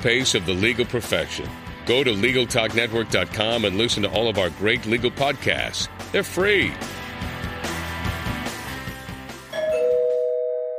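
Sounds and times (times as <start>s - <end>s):
speech: 0.0s - 7.0s
busy music: 0.0s - 10.3s
two-tone doorbell chime: 9.5s - 10.7s.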